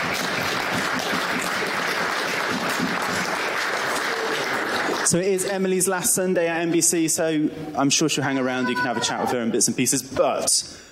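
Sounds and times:
audience clapping: 0.0s - 6.1s
speech: 5.1s - 10.9s.

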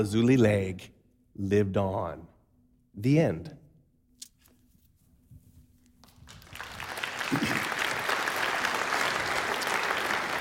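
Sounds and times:
speech: 0.0s - 2.3s, 3.0s - 3.6s
audience clapping: 6.0s - 10.3s.

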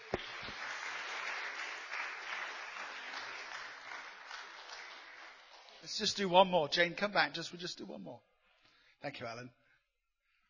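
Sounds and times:
audience applause: 0.0s - 6.1s
speech: 5.8s - 8.3s, 9.0s - 9.6s.

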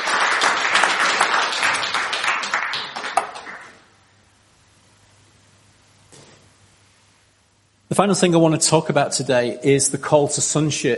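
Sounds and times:
audience applause: 0.0s - 3.8s
speech: 8.0s - 10.9s.

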